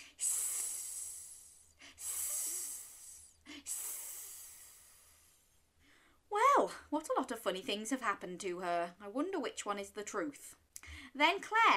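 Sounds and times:
voice imitating snake hisses: 0.0s - 5.4s
quick breaths: 0.0s - 6.3s
speech: 6.6s - 11.7s.

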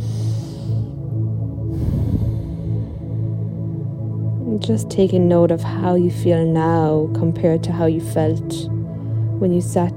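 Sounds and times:
slow deep breath during a guided grounding meditation: 0.0s - 4.0s
steady low hum: 0.0s - 9.9s
speech: 4.6s - 8.8s, 9.4s - 9.9s.

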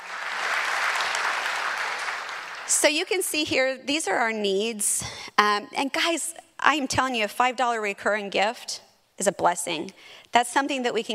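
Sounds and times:
audience applause: 0.0s - 2.8s
speech: 2.7s - 11.1s.

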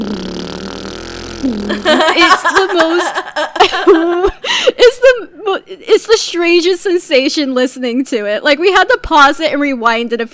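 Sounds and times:
voice imitating an airplane with a buzzing drone: 1.3s - 3.4s
speech: 1.4s - 10.3s
person chuckling: 1.5s - 5.2s.

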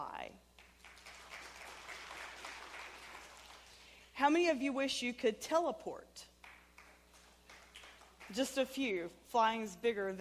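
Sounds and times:
speech: 0.0s - 0.5s, 4.2s - 6.3s, 8.3s - 10.1s
audience clapping: 0.6s - 4.0s, 6.4s - 8.6s.

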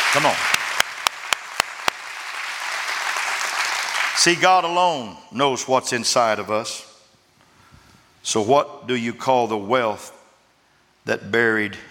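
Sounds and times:
audience applauding: 0.0s - 4.3s
speech: 0.1s - 0.5s, 4.2s - 6.9s, 8.2s - 10.2s, 11.1s - 11.8s.

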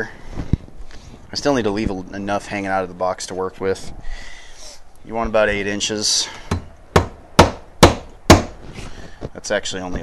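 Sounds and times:
speech: 1.4s - 6.5s, 9.4s - 10.0s
hammering cable staples into wood: 6.5s - 8.6s.

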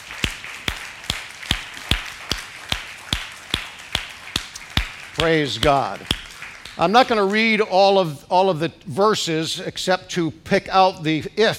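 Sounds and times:
audience clapping hands: 0.0s - 7.6s
speech: 5.2s - 6.2s, 6.8s - 11.5s.

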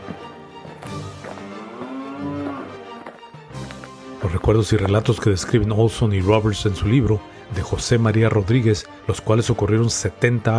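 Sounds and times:
oxen mooing: 1.2s - 3.0s
speech: 4.2s - 10.5s.

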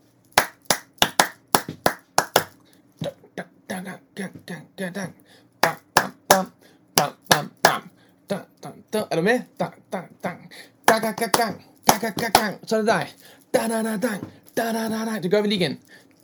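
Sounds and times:
rhythmic hand claps: 0.3s - 2.6s, 5.6s - 7.9s, 10.2s - 12.7s
faint vocal sounds: 3.0s - 16.2s
speech: 3.8s - 5.8s, 6.4s - 7.5s, 8.3s - 9.7s, 11.0s - 16.2s.

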